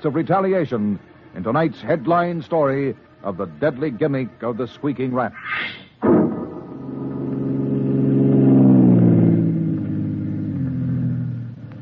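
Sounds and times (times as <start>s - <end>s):
speech: 0.0s - 6.3s
car engine revving: 6.0s - 11.8s.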